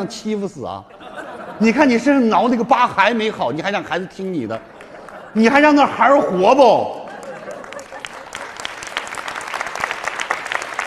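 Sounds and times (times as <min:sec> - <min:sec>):
speech: 0:00.0 - 0:01.0, 0:01.6 - 0:04.7, 0:05.3 - 0:07.0
laughter: 0:00.9 - 0:08.8
audience applause: 0:06.9 - 0:10.8.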